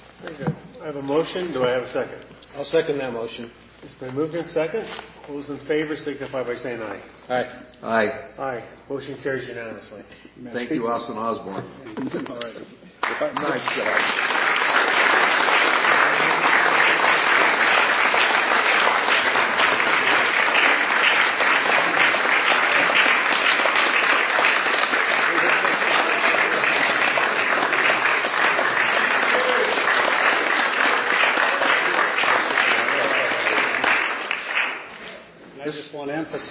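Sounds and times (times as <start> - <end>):
speech: 0.8 - 14.4
applause from a group: 13.0 - 35.3.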